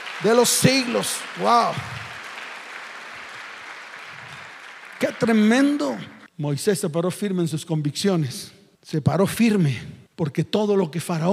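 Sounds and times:
audience applause: 0.0s - 6.3s
speech: 0.2s - 2.0s, 5.0s - 11.3s.

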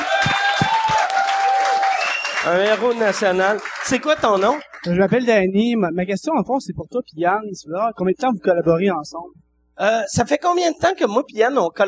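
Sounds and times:
audience applause: 0.0s - 5.2s
shrill whistles: 0.4s - 2.5s
speech: 2.4s - 11.8s.

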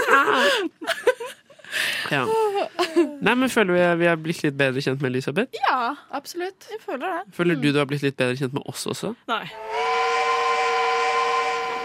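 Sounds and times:
laughter: 0.0s - 1.6s
speech: 0.3s - 0.8s, 2.1s - 10.1s
train whistle: 9.5s - 11.8s.

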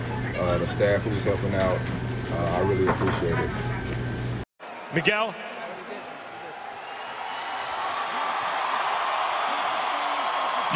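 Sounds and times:
speech: 0.4s - 3.7s, 4.9s - 5.5s
boxing arena crowd cheering: 4.6s - 10.7s.

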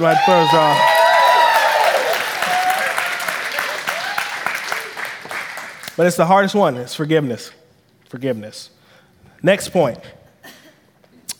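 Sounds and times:
speech: 0.0s - 0.9s, 6.0s - 8.8s, 9.4s - 10.2s
audience clapping: 0.0s - 6.1s.

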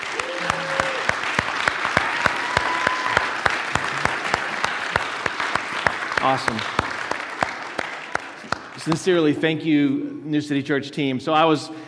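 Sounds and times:
audience applause: 0.0s - 9.2s
speech: 6.2s - 6.8s, 8.8s - 11.8s.

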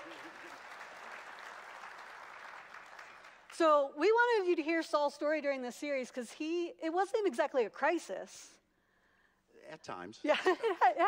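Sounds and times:
audience applause: 0.0s - 3.5s
speech: 3.6s - 8.6s, 9.7s - 11.0s.

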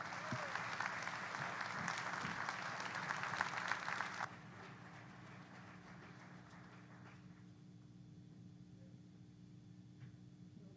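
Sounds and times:
church audience applauding to welcome a guest speaker: 0.0s - 7.4s.

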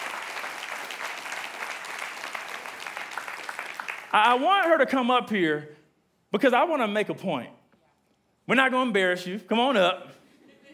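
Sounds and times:
audience clapping: 0.0s - 4.9s
speech: 4.1s - 7.6s, 8.5s - 10.2s.

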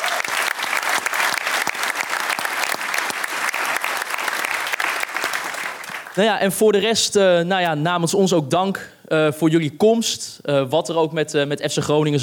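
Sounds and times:
audience applause: 0.0s - 6.2s
speech: 6.2s - 12.2s.

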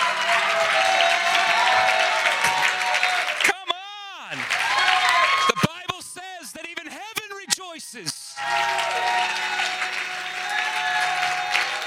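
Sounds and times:
audience clapping: 0.0s - 6.0s, 8.3s - 11.8s.

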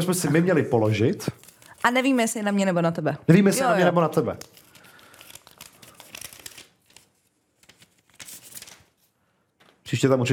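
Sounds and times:
speech: 0.0s - 4.6s, 9.9s - 10.3s
paper envelope being opened with crinkling and tearing: 1.3s - 2.4s, 4.2s - 9.0s.

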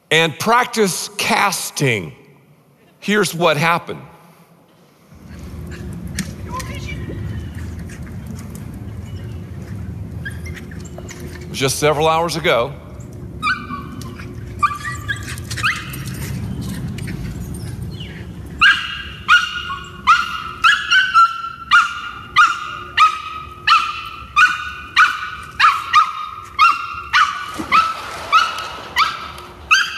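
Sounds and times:
speech: 0.1s - 2.2s, 3.0s - 4.1s, 11.6s - 12.8s
rescued former street dog barking: 18.6s - 29.9s.

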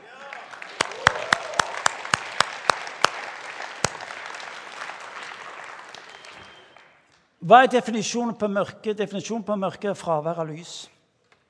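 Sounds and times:
audience applause: 0.0s - 7.0s
speech: 7.4s - 11.0s.

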